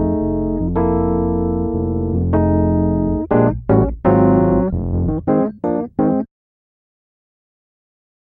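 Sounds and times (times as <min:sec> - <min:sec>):
rhythmic Fender Rhodes electric piano in mono: 0:00.0 - 0:06.3.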